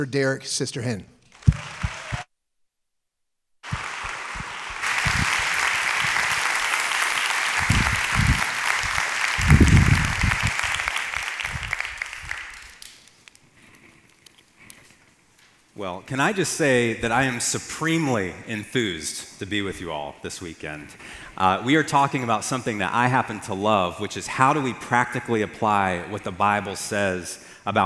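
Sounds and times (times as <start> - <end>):
speech: 0.0 - 1.7, 16.1 - 27.8
church audience applause welcoming a speaker: 1.4 - 2.3, 3.6 - 13.1.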